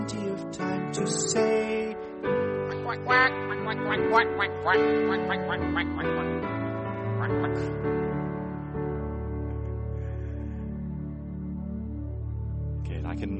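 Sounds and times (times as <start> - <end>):
sustained musical chords in a children's song: 0.0 - 13.3
speech: 0.9 - 1.6, 2.9 - 6.6, 7.2 - 8.0
duck quacking: 2.7 - 6.2, 7.0 - 7.8.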